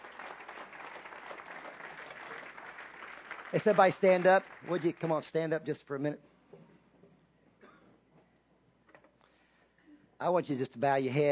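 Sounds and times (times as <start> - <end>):
audience applauding: 0.0 - 5.5
speech: 3.5 - 6.3, 10.2 - 11.3.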